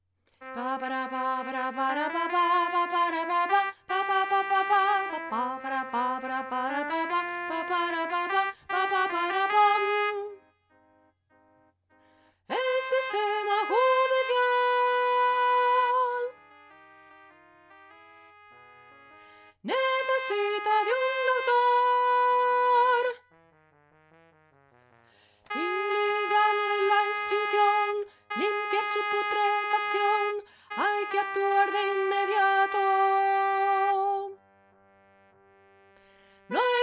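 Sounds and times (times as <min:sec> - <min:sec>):
soprano singing: 0:00.5 - 0:10.4, 0:12.5 - 0:16.5, 0:19.7 - 0:23.2, 0:25.5 - 0:34.4, 0:36.5 - 0:36.8.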